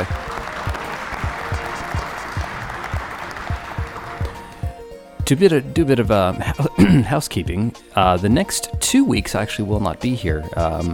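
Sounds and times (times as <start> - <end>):
round of applause: 0.0 - 4.7
speech: 5.3 - 10.9.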